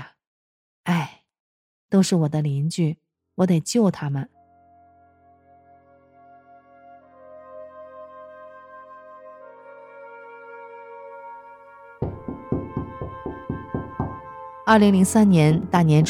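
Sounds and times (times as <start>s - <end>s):
speech: 1.9s - 4.4s, 14.7s - 16.0s
knocking on a door: 12.0s - 14.3s.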